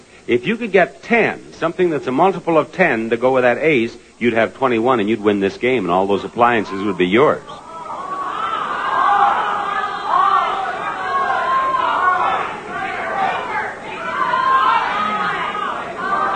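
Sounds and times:
speech: 0.2s - 7.6s
audience yelling out an answer: 6.7s - 16.3s.

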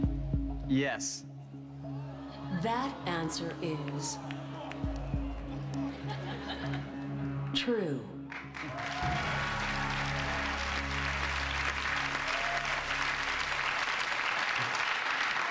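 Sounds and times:
speech: 0.7s - 1.3s, 2.5s - 4.4s, 7.6s - 9.2s
audience applause: 2.0s - 7.5s, 8.3s - 15.4s
laughter: 5.5s - 7.4s.

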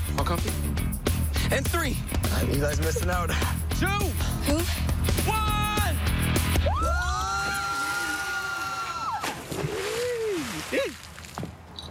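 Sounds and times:
speech: 0.2s - 0.8s, 1.5s - 5.5s
people screaming while being dunked in water: 6.5s - 9.3s
rumbling sloshing water: 7.4s - 11.8s.

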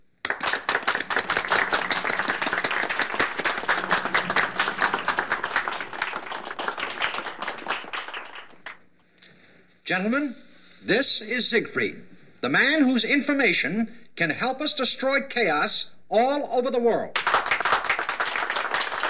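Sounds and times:
crowd applause: 0.2s - 8.8s, 17.2s - 19.0s
speech: 9.9s - 17.2s.

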